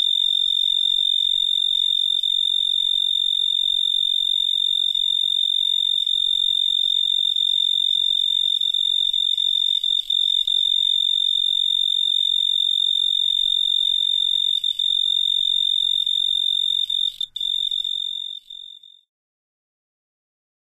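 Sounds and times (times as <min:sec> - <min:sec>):
pine tree cricket chirping: 0:00.0 - 0:19.1.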